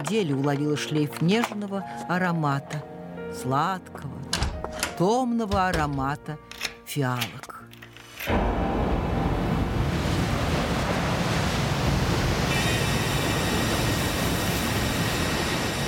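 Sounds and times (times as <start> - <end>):
speech: 0.0 - 4.4, 5.0 - 7.5
stormy sea waves crashing: 8.3 - 15.8.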